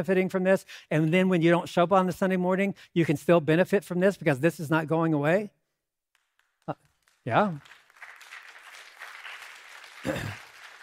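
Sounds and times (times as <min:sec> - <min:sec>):
speech: 0:00.0 - 0:05.6, 0:06.7 - 0:07.8, 0:10.0 - 0:10.4
audience applauding: 0:06.2 - 0:10.8.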